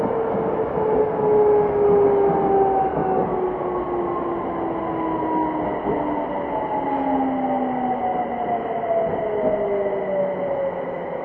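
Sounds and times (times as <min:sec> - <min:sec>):
Yokohama Municipal Subway 3000V train rumble and rattle: 0:00.0 - 0:11.2.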